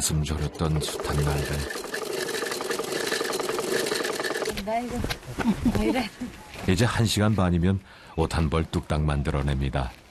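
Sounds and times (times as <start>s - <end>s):
speech: 0.0s - 1.9s, 4.7s - 10.0s
sewing machine running: 0.5s - 4.6s.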